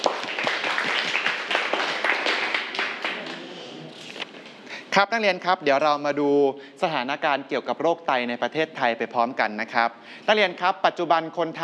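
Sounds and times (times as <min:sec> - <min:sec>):
classroom applause: 0:00.0 - 0:03.9
speech: 0:05.0 - 0:11.6.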